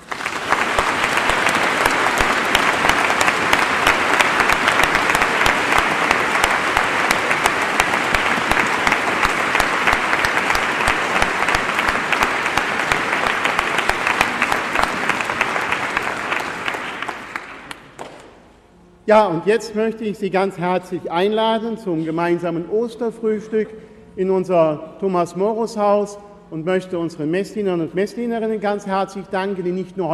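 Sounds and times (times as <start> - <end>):
audience applause in church: 0.0 - 18.4
speech: 19.1 - 30.1.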